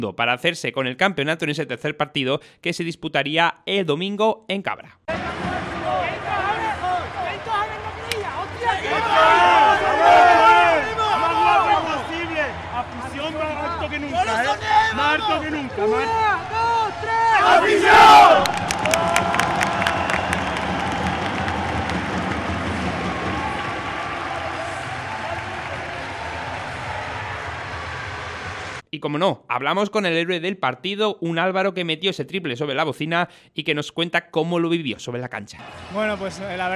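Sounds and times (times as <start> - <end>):
speech: 0.0 - 5.7, 13.9 - 19.4, 28.9 - 36.7
team's loud rallying shout: 5.1 - 12.8, 13.5 - 22.0
rhythmic clapping: 18.3 - 28.8.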